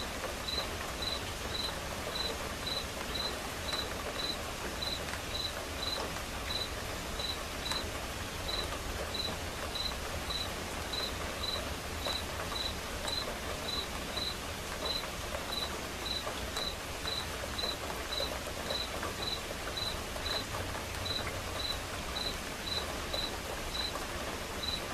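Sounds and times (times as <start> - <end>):
soft steady rain: 0.0 - 24.9
cricket chirping: 0.5 - 7.8, 8.5 - 12.7, 13.7 - 14.3, 21.0 - 23.9, 24.6 - 24.8.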